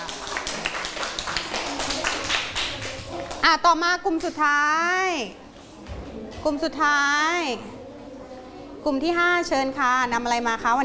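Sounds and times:
classroom clapping for a group: 0.0 - 3.5
speech: 3.4 - 5.4, 6.4 - 7.8, 8.8 - 10.8.

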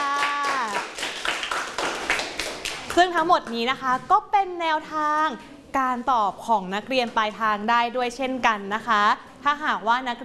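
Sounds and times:
classmates clapping for a friend in a school class: 0.0 - 3.6
speech: 3.0 - 10.2.

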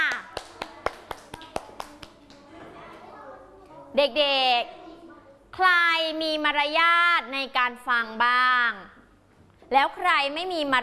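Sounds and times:
classroom of children clapping hands: 0.0 - 2.5
speech: 4.0 - 4.8, 5.6 - 9.0, 9.7 - 10.8.

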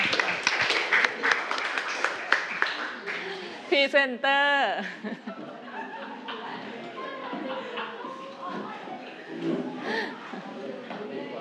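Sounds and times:
room full of students clapping: 0.0 - 3.5
speech: 3.8 - 5.3
laughter: 4.8 - 10.5.

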